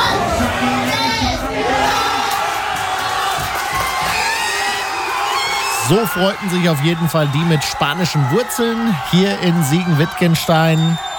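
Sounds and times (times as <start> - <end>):
fans cheering at the final whistle: 0.0 - 11.1
speech: 5.9 - 11.1.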